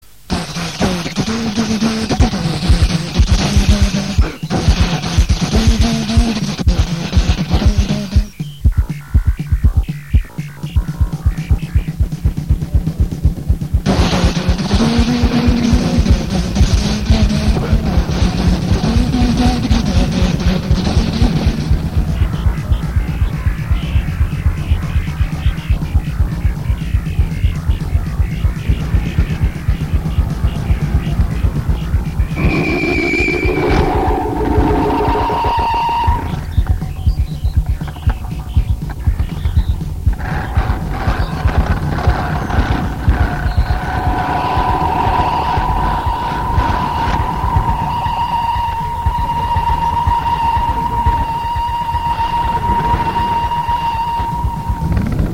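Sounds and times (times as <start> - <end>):
instrumental music: 0.1 - 55.3.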